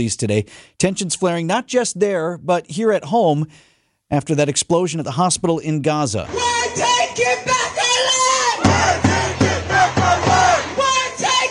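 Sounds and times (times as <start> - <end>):
speech: 0.0 - 9.0
protesters chanting in the street: 6.3 - 11.4.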